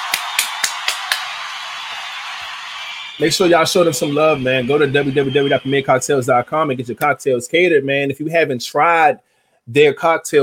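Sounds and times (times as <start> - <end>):
applause: 0.0 - 6.9
speech: 3.2 - 10.4.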